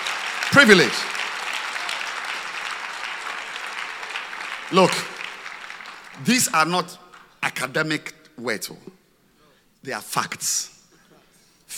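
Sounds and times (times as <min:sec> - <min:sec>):
audience clapping hands: 0:00.0 - 0:07.4
speech: 0:00.5 - 0:01.2, 0:04.7 - 0:05.1, 0:06.2 - 0:08.9, 0:09.8 - 0:10.7.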